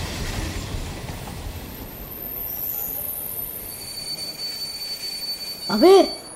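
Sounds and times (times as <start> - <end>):
rough rumbling rail noise: 0.0 - 6.3
Shatabdi Express wheels squealing at platform three: 1.3 - 6.3
speech: 5.7 - 6.2.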